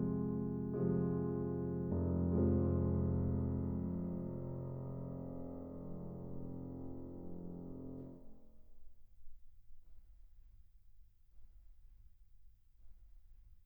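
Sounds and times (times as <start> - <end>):
piano etude in F minor: 0.0 - 8.4.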